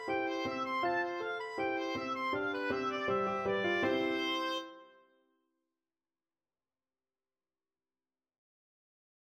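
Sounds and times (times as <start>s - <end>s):
oboe playing baroque piece: 0.0s - 5.0s.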